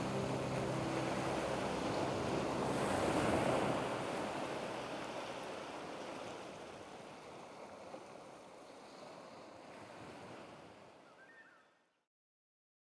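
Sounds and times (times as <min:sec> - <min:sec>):
ocean relaxing music: 0:00.0 - 0:05.4.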